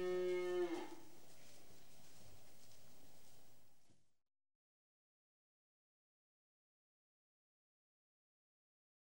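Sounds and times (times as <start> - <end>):
cattle mooing and bellowing: 0.0 - 1.0.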